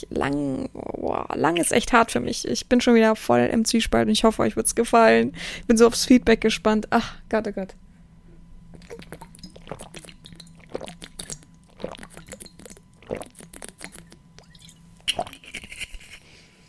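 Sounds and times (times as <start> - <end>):
speech: 0.0 - 7.8
low hum: 0.0 - 16.6
person drinking: 8.7 - 15.4.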